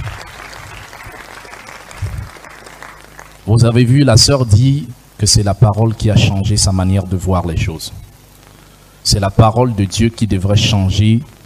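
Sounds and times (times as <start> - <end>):
congregation applauding at a church teaching service: 0.0 - 3.5
speech: 3.5 - 8.0, 9.0 - 11.4.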